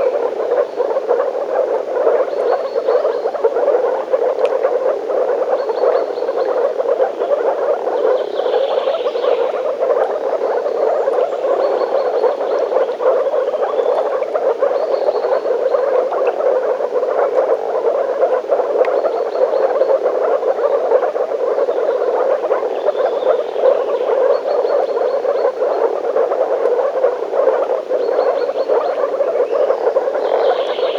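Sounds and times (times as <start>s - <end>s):
chorus of frogs croaking in the forest: 0.0s - 30.9s.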